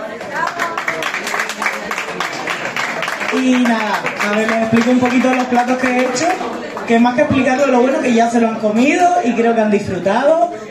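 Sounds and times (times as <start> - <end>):
audience applause: 0.0 - 6.9
mixed voices: 0.0 - 10.6
speech: 3.3 - 10.4.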